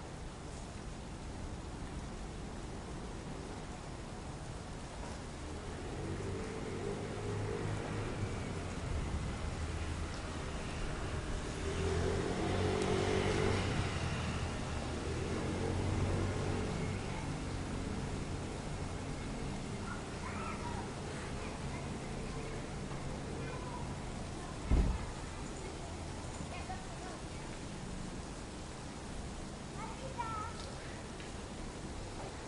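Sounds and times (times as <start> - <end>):
city rainfall hiss: 0.0 - 32.4
traffic rumble: 0.0 - 32.4
vehicle passing: 5.4 - 27.4.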